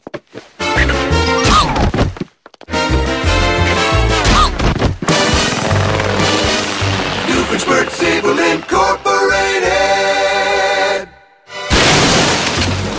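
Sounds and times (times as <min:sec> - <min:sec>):
music: 0:00.6 - 0:01.8, 0:02.7 - 0:11.8
door being smashed in: 0:11.7 - 0:12.9.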